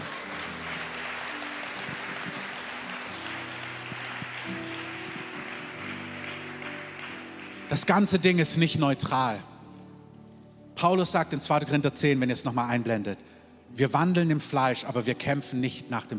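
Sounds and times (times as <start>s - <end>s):
audience applause: 0.0s - 8.4s
sustained organ or keyboard tones: 0.0s - 8.7s
speech: 7.7s - 9.5s, 10.8s - 16.1s.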